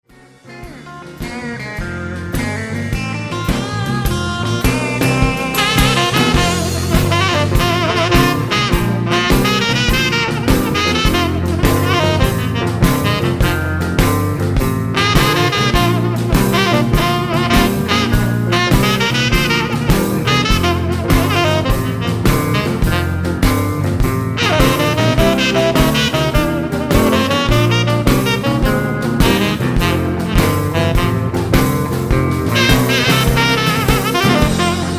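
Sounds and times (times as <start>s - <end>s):
honky tonk music: 0.0s - 34.9s.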